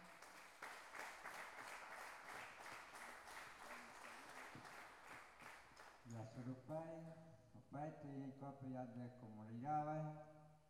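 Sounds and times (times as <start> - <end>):
audience applause: 0.0 - 5.9
speech: 6.1 - 10.4.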